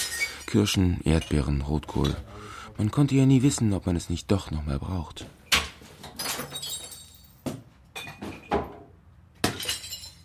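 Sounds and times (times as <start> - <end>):
glass preserve jars shattering in a container: 0.0 - 1.5, 6.0 - 8.7, 9.4 - 10.2
speech: 0.5 - 5.4.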